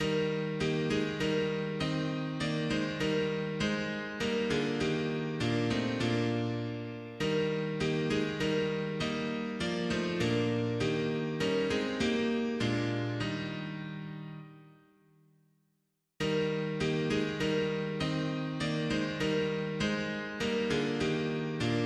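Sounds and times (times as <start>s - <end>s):
mono piano: 0.0s - 15.1s, 16.2s - 21.8s.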